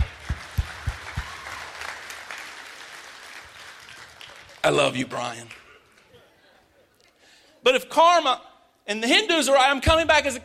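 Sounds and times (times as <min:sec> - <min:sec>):
audience clapping loudly: 0:00.0 - 0:06.1
speech: 0:04.6 - 0:05.6, 0:07.6 - 0:10.4.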